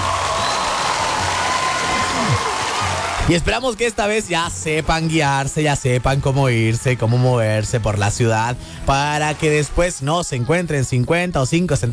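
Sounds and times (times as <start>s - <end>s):
whoop: 0.0s - 3.3s
crowd applauding: 0.0s - 4.2s, 8.9s - 10.3s
speech: 3.3s - 11.9s.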